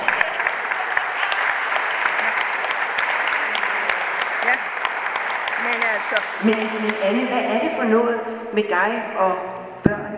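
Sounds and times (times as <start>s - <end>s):
audience applause: 0.0s - 7.3s
speech: 6.1s - 10.0s.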